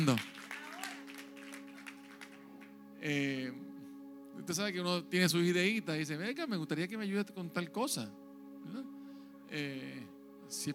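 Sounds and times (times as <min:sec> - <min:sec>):
speech: 0:00.0 - 0:00.4, 0:03.0 - 0:03.7, 0:04.4 - 0:10.7
audience applause: 0:00.0 - 0:02.7.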